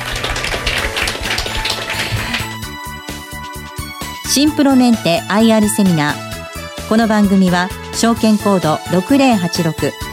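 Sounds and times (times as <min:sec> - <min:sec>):
audience applause: 0:00.0 - 0:02.6
speech: 0:04.4 - 0:06.3, 0:06.9 - 0:10.1.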